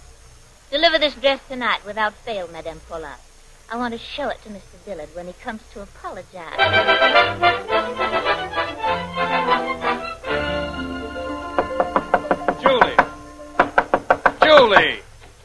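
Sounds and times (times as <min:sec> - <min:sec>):
speech: 0:00.7 - 0:09.9
banging on a bedroom door: 0:11.6 - 0:15.0.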